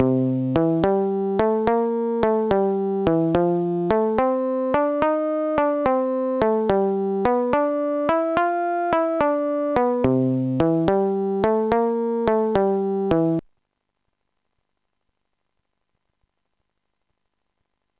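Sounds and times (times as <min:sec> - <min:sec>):
bass: 0:00.0 - 0:13.4.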